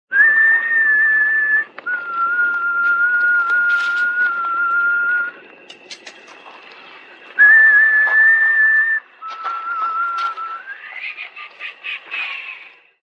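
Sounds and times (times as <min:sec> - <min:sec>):
whistle ringtone: 0:00.2 - 0:05.4, 0:07.4 - 0:10.8
laughter: 0:09.4 - 0:13.0.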